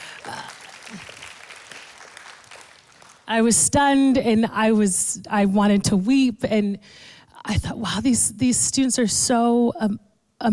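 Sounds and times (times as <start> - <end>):
audience clapping: 0.0 - 3.3
speech: 3.3 - 10.5.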